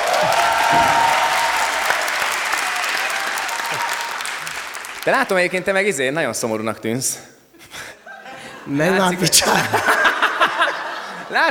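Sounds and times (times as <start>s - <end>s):
applause from a group: 0.0s - 5.6s
speech: 0.2s - 1.0s, 5.0s - 7.9s, 8.7s - 10.2s, 11.3s - 11.4s
laughter: 7.7s - 11.4s.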